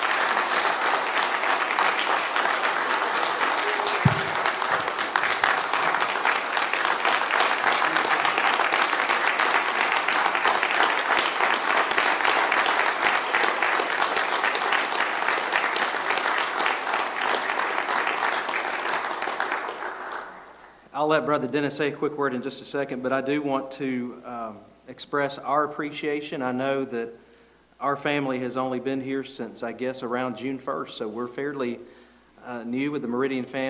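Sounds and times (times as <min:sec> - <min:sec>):
audience applause: 0:00.0 - 0:20.7
speech: 0:21.1 - 0:24.3, 0:25.0 - 0:27.2, 0:27.8 - 0:31.9, 0:32.5 - 0:33.6.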